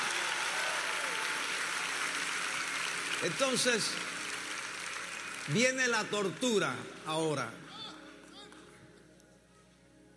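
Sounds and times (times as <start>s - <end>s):
audience applause: 0.0s - 7.0s
speech: 3.2s - 4.1s, 5.5s - 7.8s.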